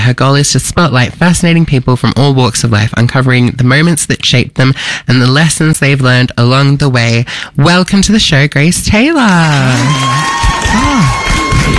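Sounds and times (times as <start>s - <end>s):
speech: 0.1s - 11.7s
talk show studio audience cheering: 9.4s - 11.7s.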